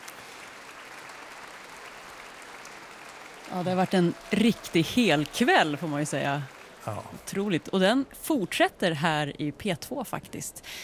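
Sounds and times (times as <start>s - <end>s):
concert audience applause: 0.0s - 8.0s
speech: 3.5s - 10.8s.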